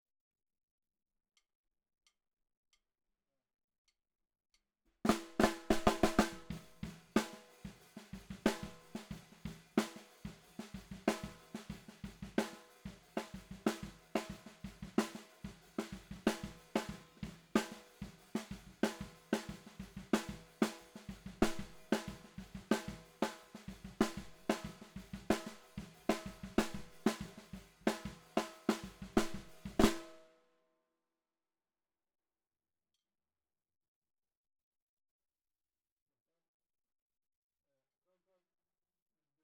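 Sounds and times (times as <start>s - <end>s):
bottom snare drum: 5.1s - 30.2s.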